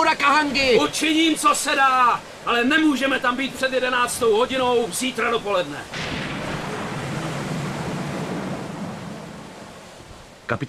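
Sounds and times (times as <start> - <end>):
stormy sea waves: 0.0 - 10.6
speech: 0.2 - 6.2, 10.5 - 10.6.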